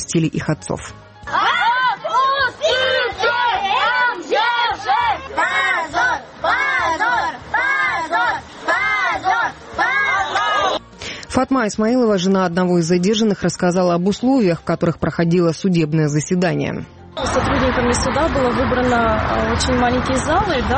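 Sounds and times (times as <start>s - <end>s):
speech: 0.1s - 1.0s, 11.4s - 20.7s
children shouting at police after court: 1.3s - 10.8s.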